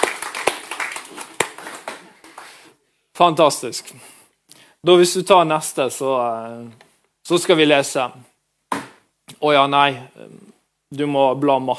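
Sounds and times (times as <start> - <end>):
applause: 0.0 - 2.7
speech: 3.2 - 4.2, 4.8 - 8.3, 9.4 - 11.7.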